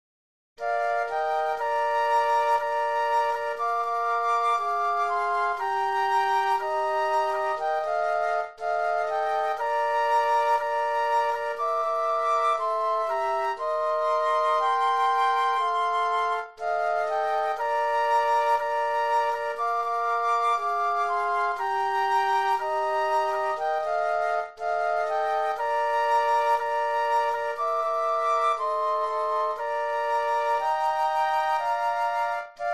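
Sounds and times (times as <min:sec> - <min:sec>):
flute trio playing: 0:00.6 - 0:32.7.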